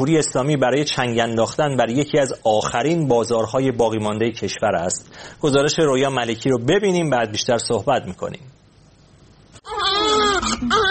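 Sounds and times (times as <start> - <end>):
speech: 0.0 - 8.6
baby crying: 9.6 - 10.8.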